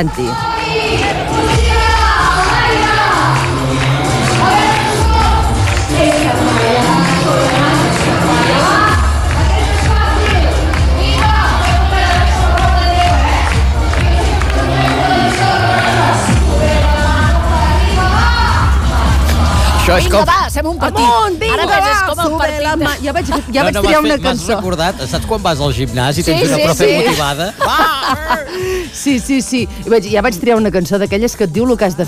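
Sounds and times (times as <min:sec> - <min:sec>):
speech: 0:00.0 - 0:00.5, 0:19.9 - 0:32.0
crowd cheering and shouting at a live show in Garrotxa: 0:00.0 - 0:24.3
laughter: 0:26.2 - 0:29.2.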